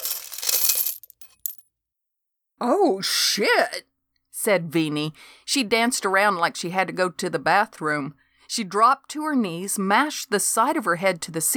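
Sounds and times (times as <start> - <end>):
coins spilling onto cement floor: 0.0 - 1.6
speech: 2.6 - 11.5.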